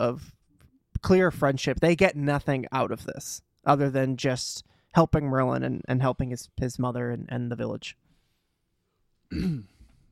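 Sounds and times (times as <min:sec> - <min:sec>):
speech: 0:00.0 - 0:00.4, 0:01.0 - 0:08.0, 0:09.3 - 0:09.7
voiced yawn: 0:09.3 - 0:10.0.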